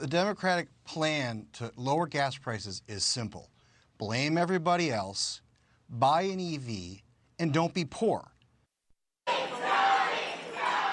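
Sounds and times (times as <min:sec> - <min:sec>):
speech: 0:00.0 - 0:08.3
fans cheering outside a Virginia courthouse after the Johnny Depp verdict: 0:09.3 - 0:10.9.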